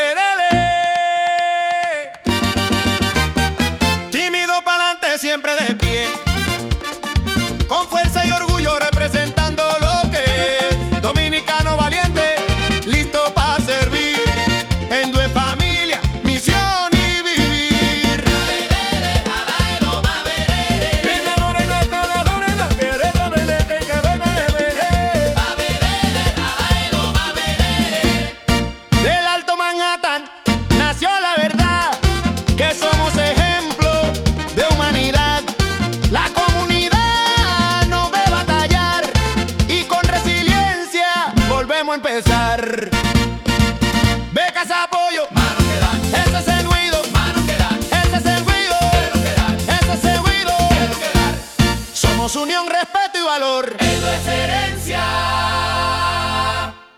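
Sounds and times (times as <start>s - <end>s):
merengue version music: 0.1s - 56.9s.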